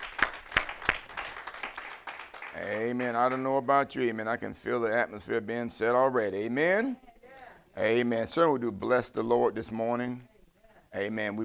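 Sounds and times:
church congregation clapping hands in praise during a morning service: 0.0s - 3.8s
speech: 2.6s - 7.1s, 7.8s - 10.3s, 10.9s - 11.4s.

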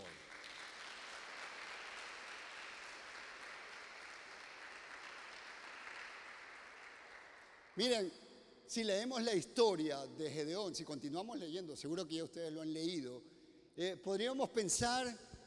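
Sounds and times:
audience applause: 0.0s - 7.8s
speech: 7.8s - 15.4s.

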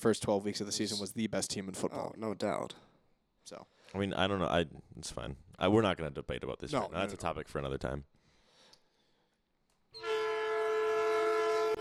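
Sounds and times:
speech: 0.0s - 8.2s
horn blast marking end of period: 10.0s - 11.7s.

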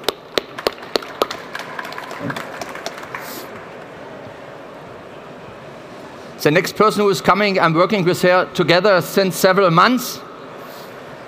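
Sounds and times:
audience applause: 0.4s - 3.9s
speech: 2.2s - 2.4s, 6.4s - 10.3s.

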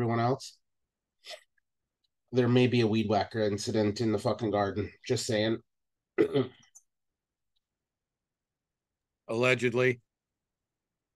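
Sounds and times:
speech: 0.0s - 0.6s, 1.2s - 1.4s, 2.3s - 6.6s, 9.3s - 10.0s
throat clearing: 6.2s - 6.7s.

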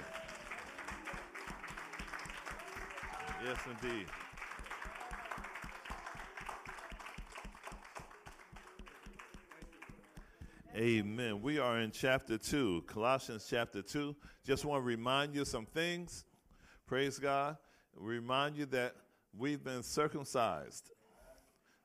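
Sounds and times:
audience applause: 0.0s - 10.2s
speech: 3.4s - 4.2s, 10.8s - 16.3s, 16.9s - 21.0s.

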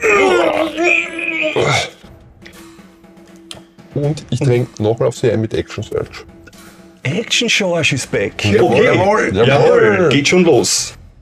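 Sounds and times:
voice imitating a creature's scream: 0.0s - 2.0s
speech: 4.0s - 6.3s, 7.0s - 11.0s.

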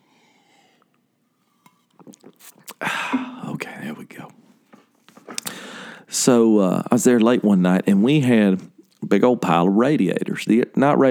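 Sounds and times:
person taking a drink: 1.4s - 3.7s, 4.8s - 5.7s
speech: 2.4s - 4.4s, 6.1s - 11.0s.

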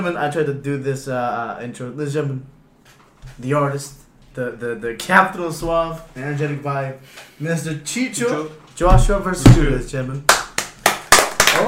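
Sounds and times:
speech: 0.0s - 2.6s, 3.3s - 10.4s
clap track claps: 10.3s - 11.6s.

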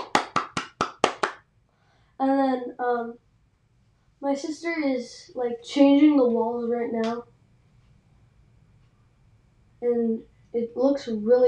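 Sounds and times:
hand clapping: 0.0s - 1.4s
speech: 2.5s - 3.3s, 4.2s - 7.3s, 9.8s - 11.4s.

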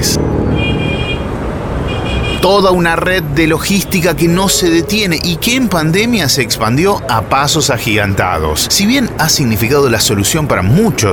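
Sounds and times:
city traffic rumble: 0.0s - 11.1s
car horn honking: 0.3s - 6.3s
speech: 2.4s - 11.1s.

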